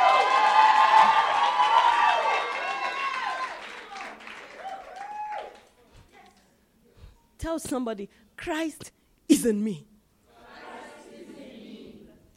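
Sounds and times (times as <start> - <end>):
audience shouting: 0.0 - 5.6
audience clapping: 0.0 - 6.5
speech: 7.4 - 8.8, 9.4 - 9.9.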